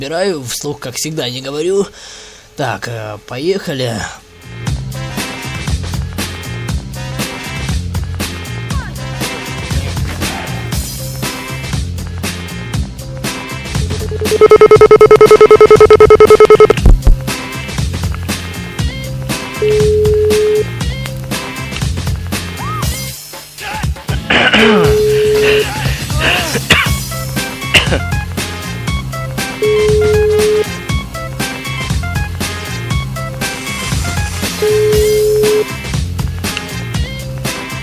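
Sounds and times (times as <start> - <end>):
speech: 0.0 - 4.6
music: 3.3 - 37.8
telephone ringback beeps: 14.0 - 16.9, 19.6 - 20.7, 24.9 - 25.7, 29.6 - 30.7, 34.6 - 35.7
telephone dial tone: 14.1 - 16.8, 19.6 - 20.6, 24.9 - 25.6, 29.6 - 30.7, 34.6 - 35.7.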